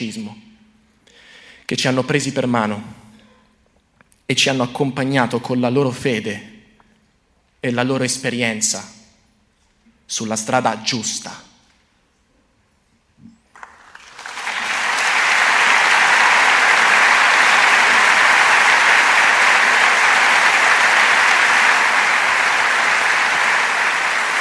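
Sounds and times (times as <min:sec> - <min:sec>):
speech: 0:00.0 - 0:00.5, 0:01.7 - 0:03.0, 0:04.3 - 0:06.5, 0:07.6 - 0:09.0, 0:10.1 - 0:11.5
audience applause after a reading: 0:13.6 - 0:24.3.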